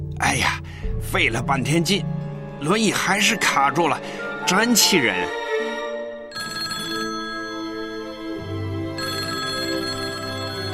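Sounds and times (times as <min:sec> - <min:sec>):
speech: 0:00.2 - 0:05.4
telephone ringing with a melodic electronic ringtone: 0:06.3 - 0:10.7.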